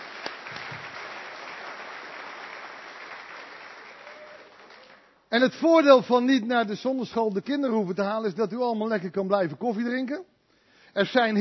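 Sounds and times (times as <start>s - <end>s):
church audience applauding: 0.0s - 5.2s
speech: 5.3s - 10.3s, 10.9s - 11.3s.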